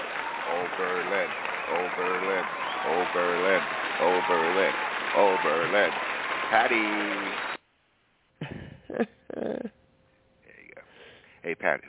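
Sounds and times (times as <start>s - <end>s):
audience applauding: 0.0s - 7.6s
speech: 0.6s - 7.5s, 8.4s - 9.6s, 11.4s - 11.8s.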